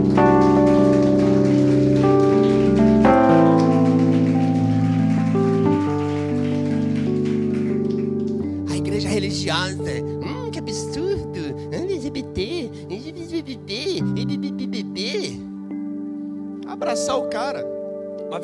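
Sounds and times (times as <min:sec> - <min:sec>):
crowd applause: 0:00.0 - 0:08.4
sustained organ-like musical chords: 0:00.0 - 0:18.4.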